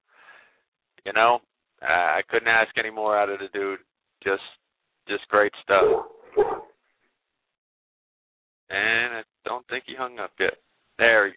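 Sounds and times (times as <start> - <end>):
speech: 1.1 - 6.7, 8.7 - 11.3
small dog barking over a phone call: 5.8 - 6.7.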